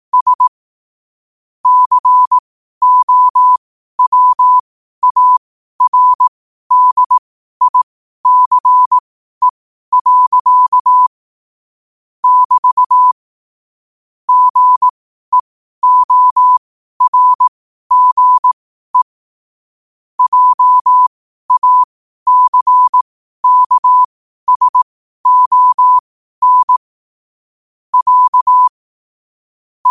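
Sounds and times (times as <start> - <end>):
morse code at 5 wpm: 0.1 - 0.5, 1.6 - 11.1, 12.2 - 13.2, 14.3 - 19.1, 20.2 - 26.8, 27.9 - 28.8.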